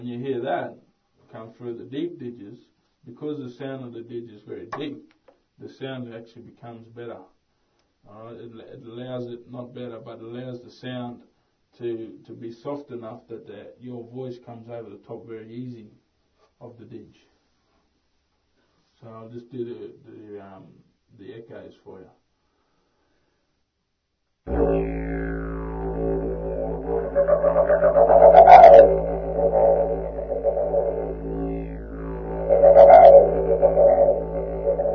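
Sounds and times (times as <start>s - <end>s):
didgeridoo: 24.5s - 34.9s.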